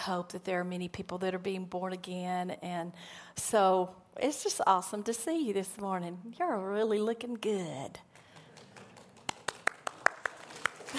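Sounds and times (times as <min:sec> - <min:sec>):
speech: 0:00.0 - 0:08.1
clapping: 0:08.2 - 0:10.9.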